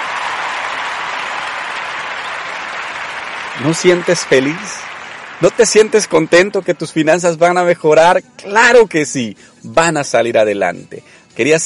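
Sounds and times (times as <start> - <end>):
applause: 0.0 - 7.4
speech: 3.6 - 11.6.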